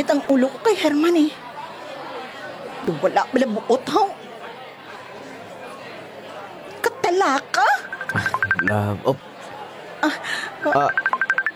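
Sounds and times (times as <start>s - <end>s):
speech: 0.0s - 1.4s, 2.8s - 4.2s, 7.1s - 9.3s, 10.0s - 11.1s
mobile phone ringtone beeps: 7.8s - 8.9s, 10.6s - 11.5s.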